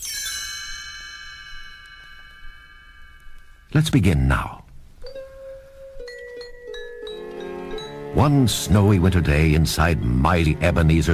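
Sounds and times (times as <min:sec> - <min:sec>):
chimes ringing: 0:00.0 - 0:04.1, 0:05.0 - 0:09.0
speech: 0:03.7 - 0:04.6, 0:08.2 - 0:11.1.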